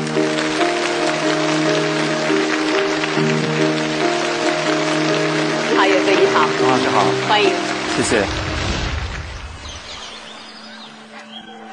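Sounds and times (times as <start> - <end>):
audience applause: 0.0 - 9.1
speech: 6.7 - 8.4.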